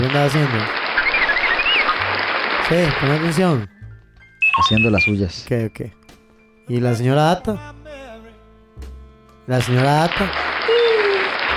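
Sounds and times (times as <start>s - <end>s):
crowd applauding: 0.0s - 3.4s, 9.6s - 11.5s
speech: 0.1s - 0.9s, 2.7s - 3.8s, 4.6s - 6.0s, 6.7s - 7.8s, 9.5s - 10.8s
faint whistle: 1.0s - 2.0s, 4.4s - 5.8s.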